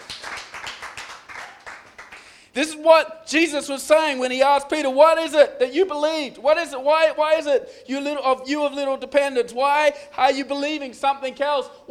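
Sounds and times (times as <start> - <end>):
audience clapping: 0.0 - 2.4
speech: 2.6 - 11.8.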